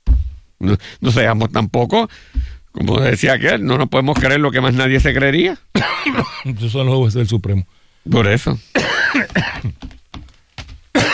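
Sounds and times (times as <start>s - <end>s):
speech: 0.6s - 10.0s
cough: 5.7s - 6.6s, 8.7s - 9.8s, 10.9s - 11.1s.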